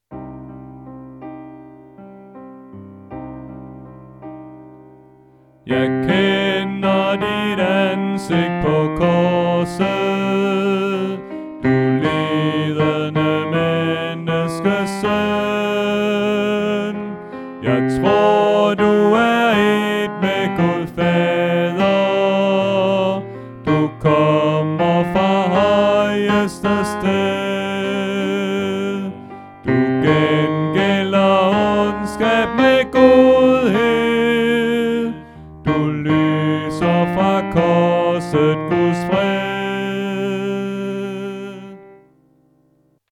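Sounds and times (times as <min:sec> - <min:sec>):
tenor singing: 0:05.6 - 0:42.0.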